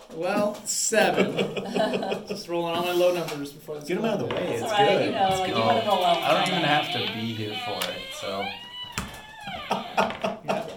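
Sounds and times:
speech: 0.1 - 8.6
laughter: 1.0 - 2.9, 4.6 - 8.6, 9.3 - 10.7
door being quietly opened: 4.8 - 10.4.

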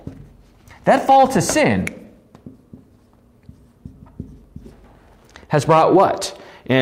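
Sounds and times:
speech: 0.8 - 2.0, 5.5 - 6.7
pen writing on a Bible study handout: 3.5 - 4.9.

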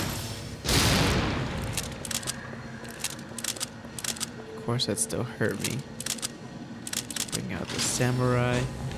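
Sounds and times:
grenade explosion in a video game: 0.1 - 2.1
speech: 4.7 - 6.1, 8.0 - 8.9.

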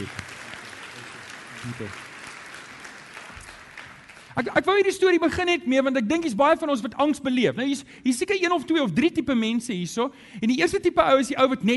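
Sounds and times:
speech: 0.0 - 0.2, 1.6 - 2.1, 4.4 - 11.7
audience applause, hand clapping: 0.0 - 4.5.

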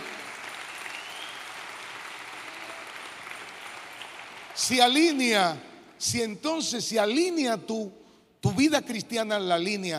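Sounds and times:
audience applause: 0.0 - 5.2
speech: 4.6 - 9.9.

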